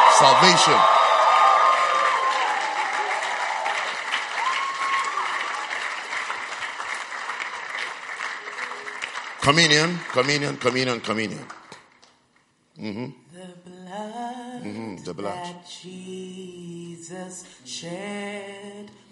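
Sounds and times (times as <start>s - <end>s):
audience clapping: 0.0s - 12.2s
speech: 0.2s - 1.0s, 9.5s - 11.6s, 12.8s - 19.0s.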